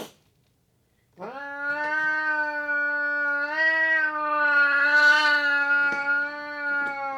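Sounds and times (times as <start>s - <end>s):
Burmese cat yowling: 1.2s - 7.1s.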